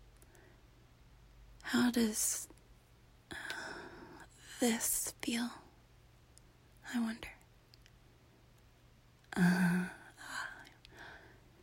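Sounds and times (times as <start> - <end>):
speech: 1.7 - 2.5, 4.6 - 5.6, 6.9 - 7.4
gasp of breath: 10.9 - 11.4.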